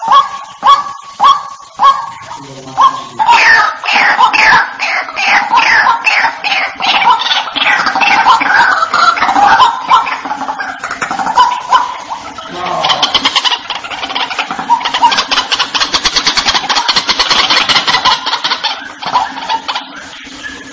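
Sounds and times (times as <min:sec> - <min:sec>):
white-breasted waterhen croaking: 0:00.0 - 0:20.7.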